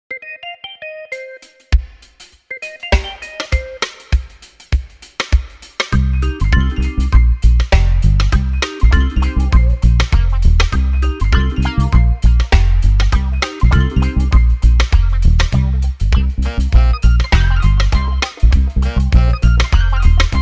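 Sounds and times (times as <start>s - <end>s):
reggae music: 0.1s - 20.4s.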